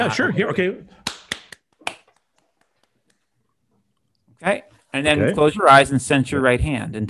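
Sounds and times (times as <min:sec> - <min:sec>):
speech: 0:00.0 - 0:01.0, 0:04.4 - 0:07.0
hands clapping quickly: 0:01.0 - 0:03.2.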